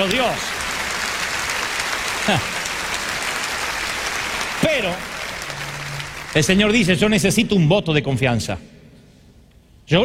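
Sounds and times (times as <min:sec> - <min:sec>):
speech: 0:00.0 - 0:00.6, 0:02.3 - 0:02.6, 0:04.6 - 0:05.2, 0:06.3 - 0:08.7, 0:09.9 - 0:10.0
audience applause: 0:00.0 - 0:07.4.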